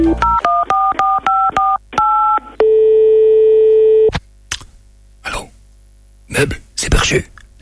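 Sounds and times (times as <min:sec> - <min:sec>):
telephone dial tone: 0:00.2 - 0:04.1
speech: 0:06.4 - 0:07.2.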